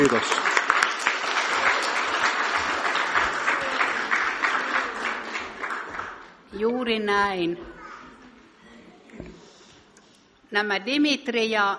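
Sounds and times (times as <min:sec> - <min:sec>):
speech: 0:00.0 - 0:00.5, 0:06.6 - 0:07.8, 0:10.5 - 0:11.7
applause from audience: 0:00.0 - 0:06.4.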